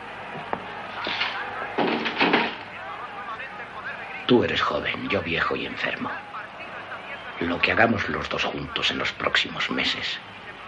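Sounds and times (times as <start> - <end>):
door closing into its frame: 0.4 - 2.7
speech: 4.3 - 6.3, 7.4 - 10.4.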